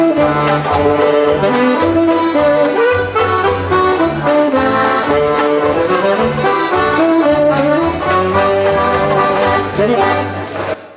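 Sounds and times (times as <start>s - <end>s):
German band playing polka: 0.0s - 10.9s.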